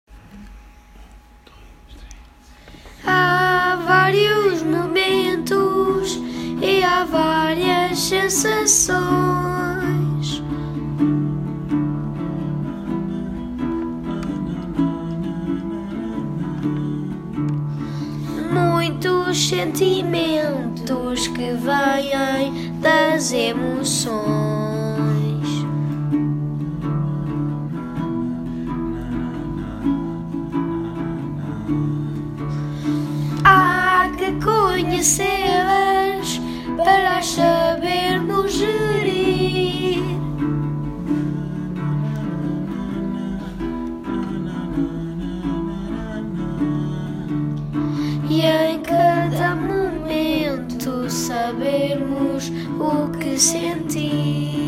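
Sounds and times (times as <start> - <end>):
emotional song: 2.0 - 54.6.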